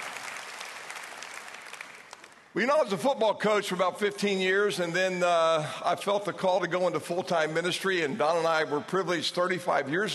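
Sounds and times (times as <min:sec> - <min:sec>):
audience applause: 0:00.0 - 0:02.4
speech: 0:02.6 - 0:10.1.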